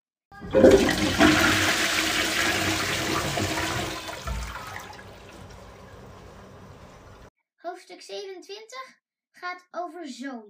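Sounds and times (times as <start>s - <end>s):
toilet flushing: 0.4s - 7.3s
speech: 0.5s - 1.6s, 8.0s - 10.4s.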